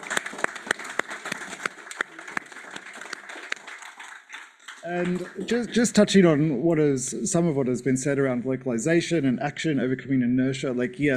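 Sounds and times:
audience applause: 0.0s - 6.2s
speech: 4.8s - 11.1s.

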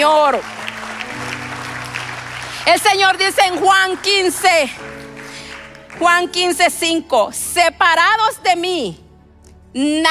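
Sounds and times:
speech: 0.0s - 0.6s, 2.6s - 5.0s, 6.0s - 9.0s, 9.7s - 10.0s
audience applause: 0.0s - 6.0s.

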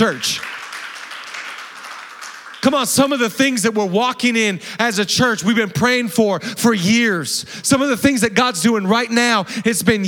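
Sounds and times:
speech: 0.0s - 0.5s, 2.7s - 10.0s
audience clapping: 0.0s - 3.6s.

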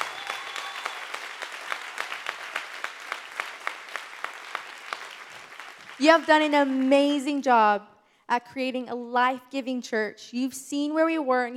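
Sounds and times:
audience applause: 0.0s - 6.9s
speech: 6.0s - 11.5s.

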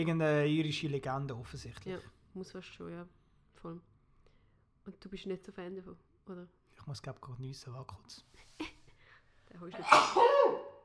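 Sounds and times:
speech: 0.0s - 3.9s, 4.8s - 8.8s, 9.5s - 10.6s
sneeze: 9.8s - 10.8s.

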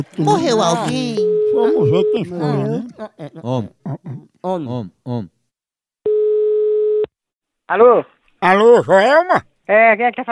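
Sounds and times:
laughter: 0.0s - 5.2s
speech: 0.0s - 5.4s, 7.7s - 10.3s
telephone dial tone while placing a call: 6.1s - 7.1s.

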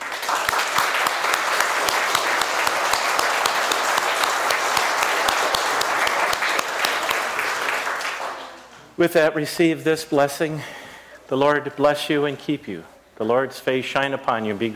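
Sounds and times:
crowd applauding: 0.0s - 8.7s
speech: 9.0s - 14.7s.

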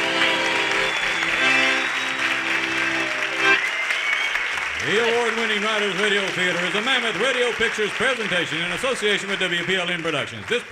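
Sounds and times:
sustained musical tones: 0.0s - 3.7s
theater audience applause: 0.0s - 10.6s
speech: 4.9s - 10.6s.

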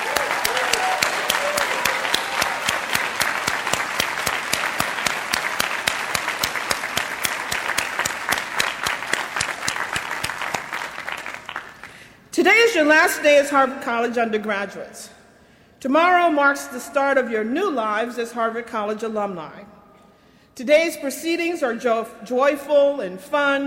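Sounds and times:
loud audience applause: 0.0s - 12.0s
speech: 12.7s - 15.2s, 15.8s - 19.7s, 20.6s - 23.6s.

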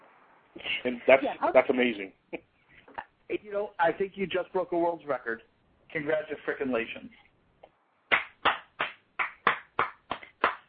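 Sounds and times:
speech: 0.6s - 2.5s, 3.3s - 7.2s
person clapping hands: 8.1s - 10.6s.

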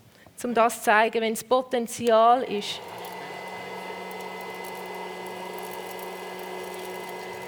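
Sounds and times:
speech: 0.4s - 3.0s
hot-air popcorn machine blower whirring: 2.4s - 7.4s.

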